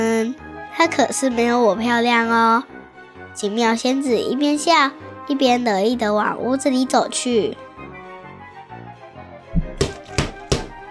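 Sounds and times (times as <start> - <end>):
speech: 0.8 - 2.8, 3.4 - 7.6
loud footsteps running downstairs: 9.6 - 10.8.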